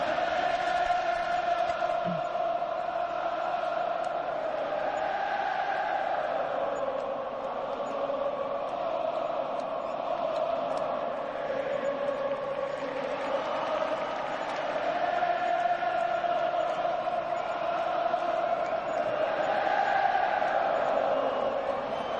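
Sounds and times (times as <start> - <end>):
football fans singing a chant in Madrid: 0.0 - 22.1.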